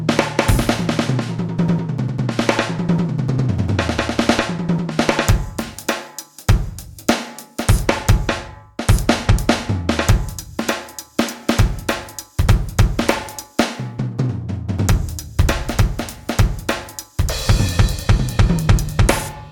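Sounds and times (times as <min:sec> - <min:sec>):
pop drums solo at 100 bpm: 0:00.0 - 0:19.5.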